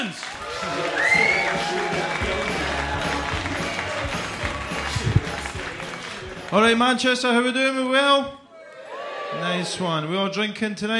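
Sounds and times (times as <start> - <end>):
audience applause: 0.0 - 7.0
speech: 6.5 - 8.4, 9.3 - 10.9.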